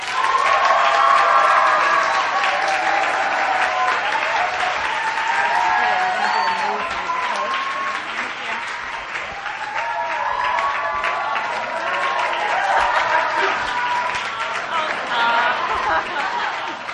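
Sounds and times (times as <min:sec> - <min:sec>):
church audience applause welcoming a student speaker: 0:00.0 - 0:16.9
church audience cheering and whooping: 0:00.0 - 0:16.9
laughter: 0:11.5 - 0:16.9.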